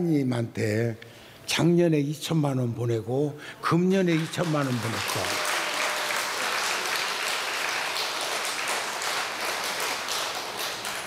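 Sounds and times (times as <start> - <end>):
speech: 0.0 - 5.4
audience clapping: 4.1 - 11.0.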